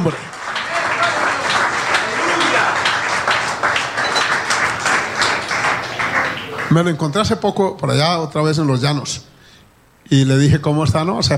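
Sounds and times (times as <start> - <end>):
speech: 0.0 - 0.3, 6.7 - 9.3, 10.1 - 11.3
audience applauding: 0.0 - 7.1.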